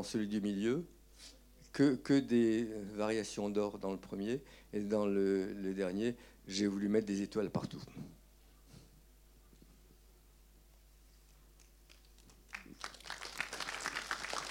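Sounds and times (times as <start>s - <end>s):
speech: 0.0s - 8.2s
audience farewell applause: 11.9s - 14.4s.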